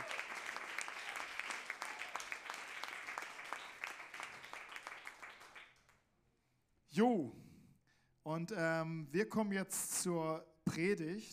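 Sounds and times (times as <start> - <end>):
audience applause: 0.0 - 5.9
speech: 7.0 - 7.4, 8.2 - 11.3.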